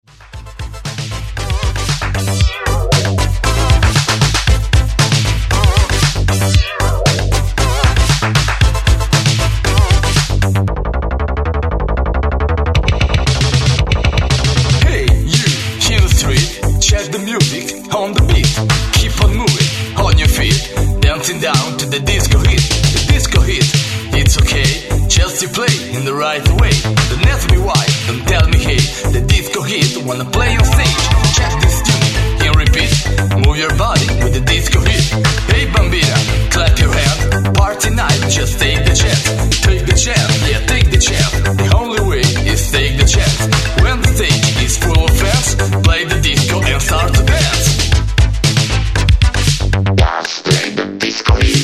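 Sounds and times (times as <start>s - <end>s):
disco hit: 0.1s - 11.7s, 12.6s - 51.6s.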